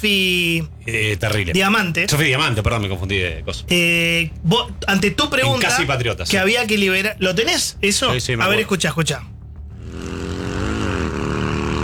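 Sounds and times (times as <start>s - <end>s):
speech: 0.0s - 9.3s
motorcycle engine: 9.2s - 11.8s.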